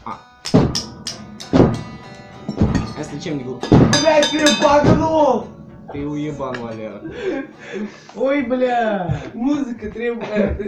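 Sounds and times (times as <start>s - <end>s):
speech: 0.0s - 0.6s, 3.0s - 10.6s
spoons played as percussion: 0.4s - 8.4s.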